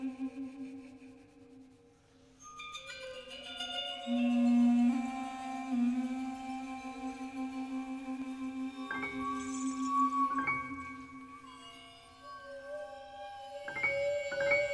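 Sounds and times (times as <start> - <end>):
waterphone: 0.0 - 14.7
piano: 4.1 - 14.7.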